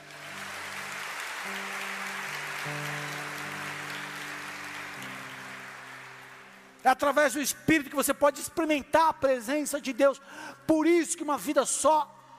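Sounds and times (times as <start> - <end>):
crowd applause: 0.0 - 6.8
speech: 6.8 - 12.2.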